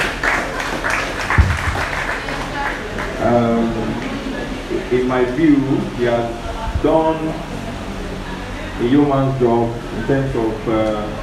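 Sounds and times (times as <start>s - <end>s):
audience clapping: 0.0s - 4.4s
speech: 5.0s - 7.6s, 8.8s - 11.2s.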